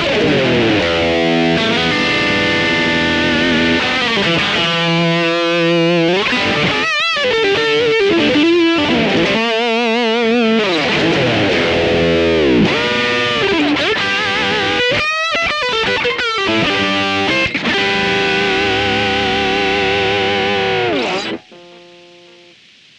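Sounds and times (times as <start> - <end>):
electric guitar through Vox AmPlug Treblebooster high gain: 0.0 - 22.9.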